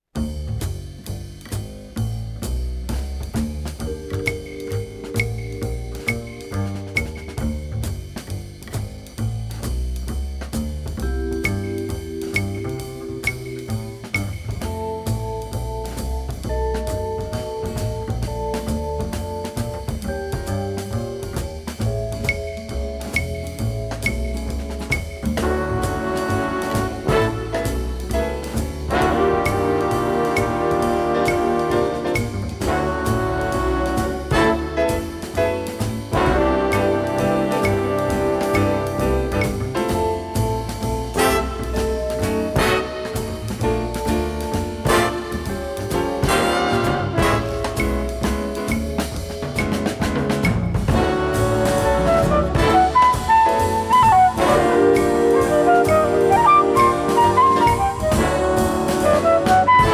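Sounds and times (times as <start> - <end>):
brass: 0.5 - 59.9.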